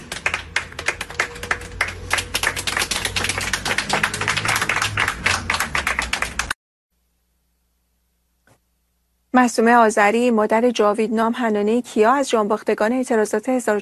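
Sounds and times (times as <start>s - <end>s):
crowd clapping in honour of those killed in the protests: 0.0s - 6.6s
speech: 9.4s - 13.7s.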